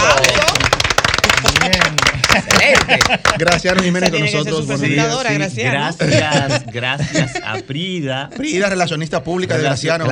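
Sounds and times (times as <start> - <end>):
audience applause: 0.0 - 4.1
laughter: 2.0 - 4.2, 5.8 - 8.7
speech: 2.9 - 10.1.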